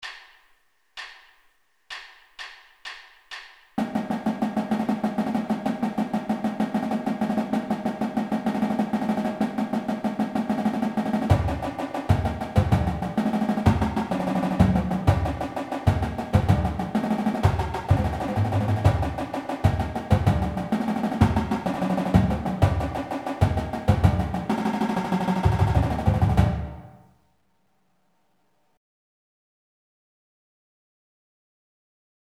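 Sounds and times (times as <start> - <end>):
marching drum warm-ups: 1.9 - 27.0.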